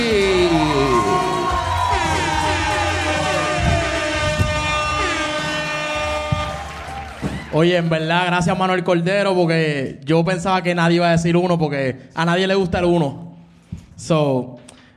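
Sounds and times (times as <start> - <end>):
blaring horn-like tones: 0.0 - 7.6
audience applause and cheering: 0.0 - 8.3
speech: 7.6 - 13.3, 14.0 - 14.6.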